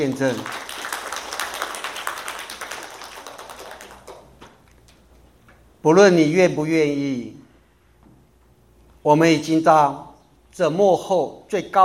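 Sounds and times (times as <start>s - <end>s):
speech: 0.0s - 0.6s, 5.8s - 7.4s, 9.0s - 11.8s
audience clapping: 0.0s - 5.0s.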